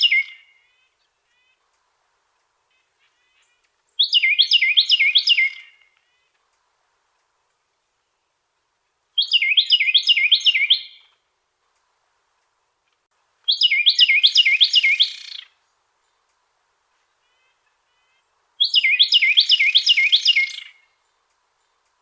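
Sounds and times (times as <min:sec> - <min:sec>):
Carolina wren singing repeated two-part phrases: 0:00.0 - 0:01.9, 0:02.7 - 0:06.4, 0:09.2 - 0:11.2, 0:13.4 - 0:16.4, 0:17.0 - 0:21.9.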